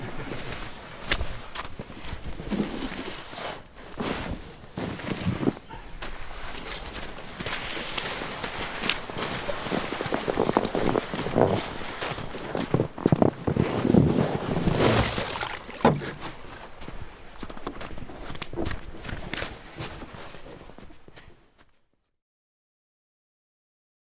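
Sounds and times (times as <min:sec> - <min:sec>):
snow shoveling: 0:00.0 - 0:16.9.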